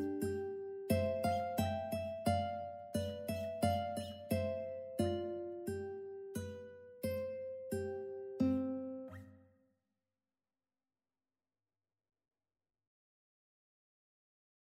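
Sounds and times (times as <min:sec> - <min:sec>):
ukulele minuet: 0:00.0 - 0:09.0.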